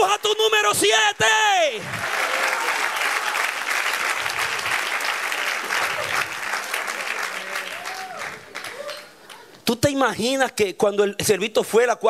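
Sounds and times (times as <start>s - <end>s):
speech: 0.0s - 2.2s, 9.7s - 12.0s
audience applauding: 1.8s - 9.5s.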